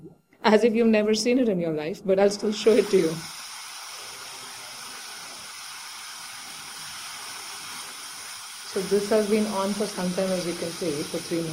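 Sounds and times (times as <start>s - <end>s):
speech: 0.5s - 3.4s, 8.8s - 11.5s
pressure cooker releasing steam: 2.3s - 11.5s.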